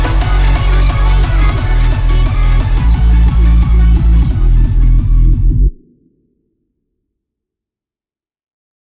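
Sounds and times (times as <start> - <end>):
hardstyle remix: 0.0 - 6.0.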